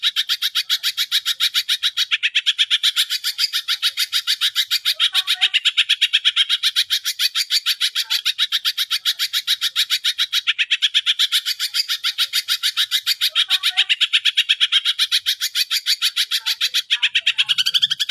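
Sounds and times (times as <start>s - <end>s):
Greater green leafbird singing actively: 0.0s - 18.0s.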